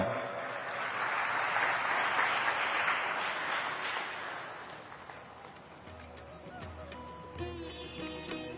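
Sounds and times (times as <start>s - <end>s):
audience applauding to welcome a speaker at an evening talk: 0.0s - 6.8s.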